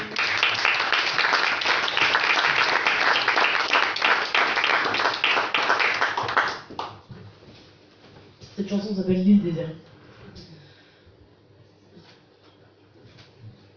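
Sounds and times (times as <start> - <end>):
audience applause: 0.0 - 6.9
speech: 8.7 - 9.9.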